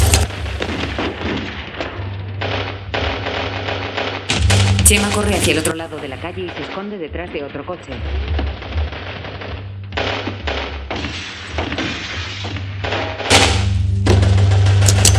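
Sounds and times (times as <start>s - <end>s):
gunfire in a street shootout: 0.0s - 7.2s, 7.9s - 15.1s
speech: 4.9s - 8.5s.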